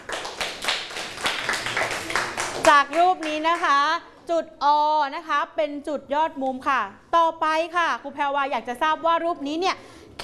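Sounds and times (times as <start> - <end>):
students clapping in a mathematics lesson: 0.0 - 3.7
speech: 2.7 - 9.9.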